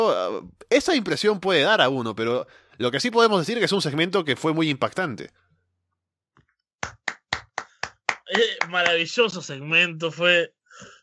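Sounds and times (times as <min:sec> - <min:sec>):
speech: 0:00.0 - 0:05.5, 0:08.3 - 0:11.0
hand clapping: 0:06.8 - 0:09.1.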